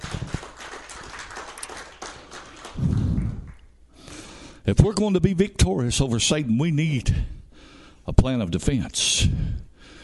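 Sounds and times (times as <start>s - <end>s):
audience clapping: 0.0s - 3.7s
speech: 4.7s - 7.4s, 8.0s - 9.6s.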